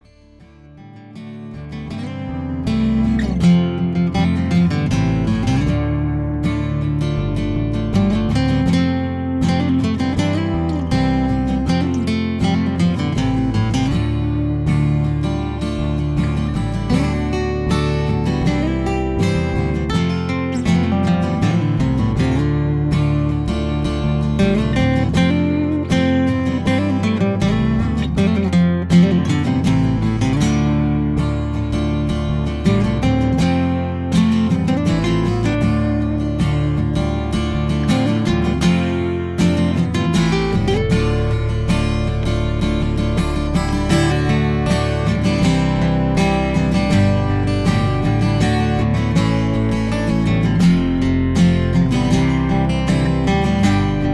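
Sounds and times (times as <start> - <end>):
instrumental music sample: 0.0 - 54.1.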